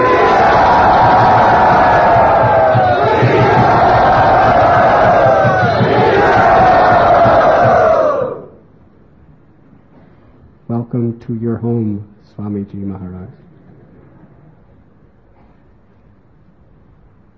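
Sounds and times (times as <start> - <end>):
temple crowd at Sridhata Gopinath Mandir cheering to welcome Maharaj: 0.0 - 8.6
speech: 11.2 - 14.6.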